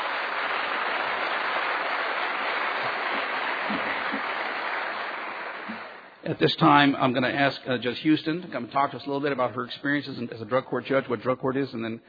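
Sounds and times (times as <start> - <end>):
audience applause: 0.0 - 6.2
speech: 6.3 - 12.0.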